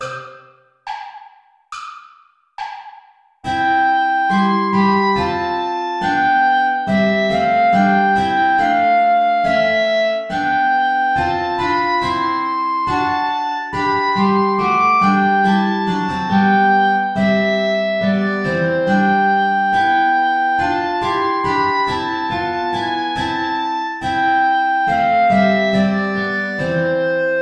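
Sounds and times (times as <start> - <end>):
play-along backing track without guitar: 0.0 - 2.0, 2.6 - 27.4.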